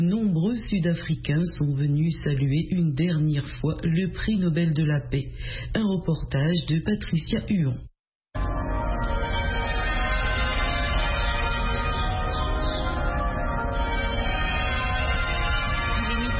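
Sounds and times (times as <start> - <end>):
speech: 0.0 - 7.9
cathedral bells ringing: 8.4 - 16.3.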